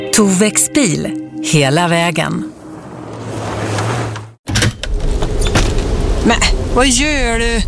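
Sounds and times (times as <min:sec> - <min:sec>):
speech: 0:00.2 - 0:02.6, 0:06.3 - 0:07.6
window being opened: 0:03.0 - 0:05.9.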